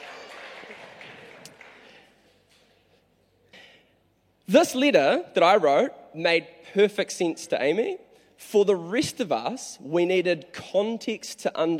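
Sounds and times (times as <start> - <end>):
audience applause: 0.0 - 2.1
speech: 4.5 - 11.7.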